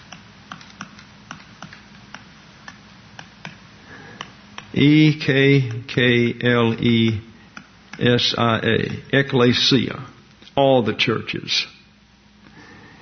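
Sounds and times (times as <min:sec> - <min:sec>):
computer keyboard typing: 0:00.0 - 0:03.6
speech: 0:04.7 - 0:07.3, 0:08.0 - 0:11.7.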